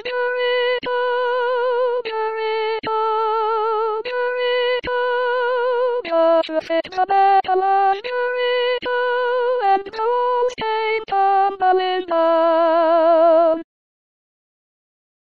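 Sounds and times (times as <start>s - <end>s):
soprano voice: 0.0s - 13.6s.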